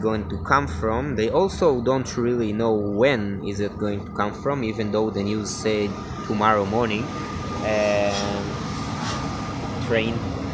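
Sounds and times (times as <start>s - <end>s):
speech: 0.0s - 8.5s, 9.9s - 10.2s
train station background noise: 0.0s - 10.5s.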